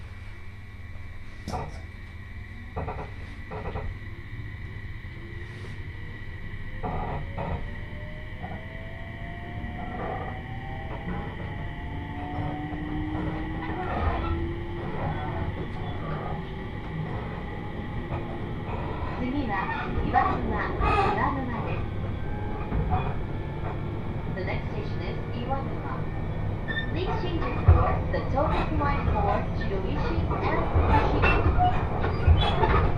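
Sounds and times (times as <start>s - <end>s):
Joban Line train rumble: 0.0s - 32.9s.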